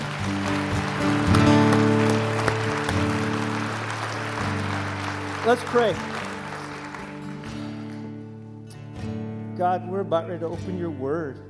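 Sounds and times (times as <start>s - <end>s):
audience clapping: 0.0s - 8.5s
speech: 5.5s - 6.1s, 9.6s - 11.4s.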